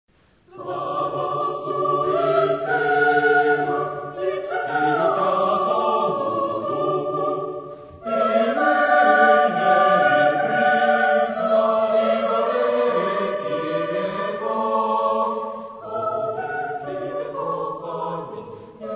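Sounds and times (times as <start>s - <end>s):
chorus singing: 0.4s - 18.9s.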